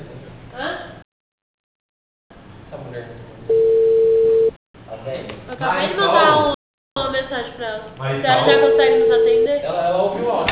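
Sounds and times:
speech: 0:02.7 - 0:03.7, 0:05.0 - 0:06.5, 0:07.6 - 0:10.5
telephone ringing tone: 0:03.5 - 0:04.5, 0:08.4 - 0:09.5.

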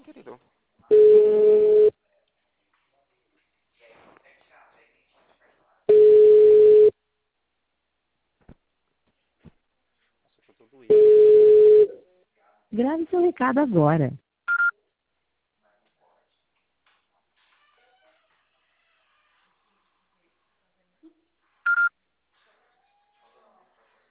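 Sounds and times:
ringback tone of an outgoing phone call: 0:00.9 - 0:01.9, 0:05.9 - 0:06.9, 0:10.9 - 0:11.9, 0:21.7 - 0:21.9
speech: 0:12.8 - 0:14.2.

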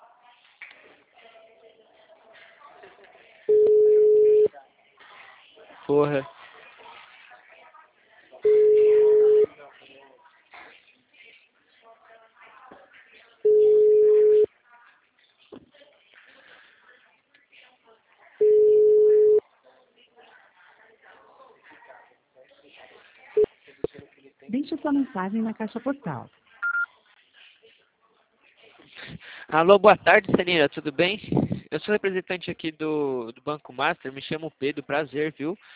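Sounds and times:
telephone ringback tone: 0:03.5 - 0:04.5, 0:08.4 - 0:09.5, 0:13.5 - 0:14.5, 0:18.4 - 0:19.4
speech: 0:05.9 - 0:06.4, 0:25.0 - 0:26.4, 0:29.5 - 0:35.7.

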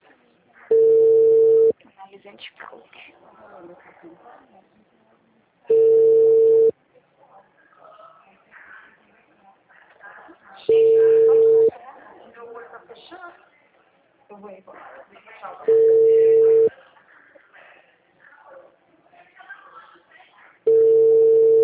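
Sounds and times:
phone ringback tones: 0:00.7 - 0:01.7, 0:05.7 - 0:06.7, 0:10.7 - 0:11.7, 0:15.7 - 0:16.7, 0:20.7 - 0:21.6
speech: 0:02.1 - 0:05.8, 0:14.3 - 0:16.0.

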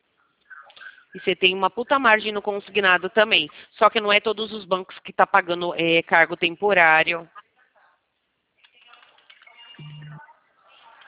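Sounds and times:
speech: 0:01.2 - 0:07.4
mobile phone vibrating: 0:09.8 - 0:10.2.

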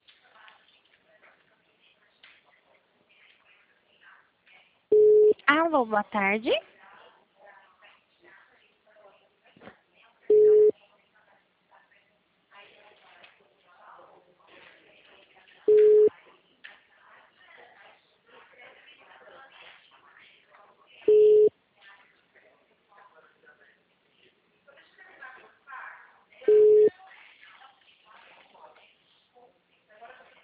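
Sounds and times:
telephone busy signal beeps: 0:04.9 - 0:05.4, 0:10.3 - 0:10.7, 0:15.7 - 0:16.1, 0:21.1 - 0:21.5, 0:26.5 - 0:26.9
recorded telephone voice message: 0:04.9 - 0:06.6
speech: 0:05.6 - 0:06.7.

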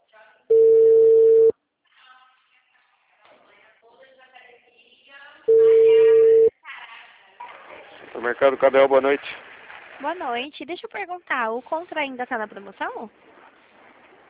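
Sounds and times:
telephone call tones: 0:00.5 - 0:01.5, 0:05.5 - 0:06.5
speech: 0:08.3 - 0:13.4.

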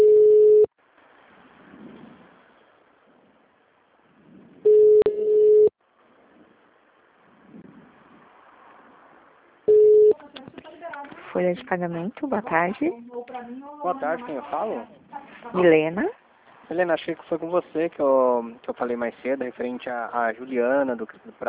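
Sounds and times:
telephone call transfer beeps on a business line: 0:00.0 - 0:00.7, 0:04.7 - 0:05.7, 0:09.7 - 0:10.2
speech: 0:11.4 - 0:21.4.

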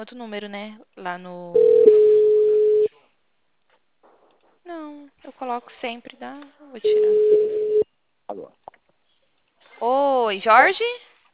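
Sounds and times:
speech: 0:00.0 - 0:02.0, 0:04.7 - 0:08.7, 0:09.8 - 0:11.1
telephone busy tone beep after a dropped call: 0:01.6 - 0:02.9, 0:06.9 - 0:07.8.

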